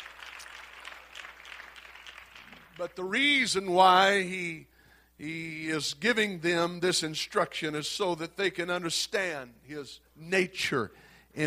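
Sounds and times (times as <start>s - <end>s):
audience clapping hands: 0.0s - 3.1s
speech: 2.8s - 11.4s.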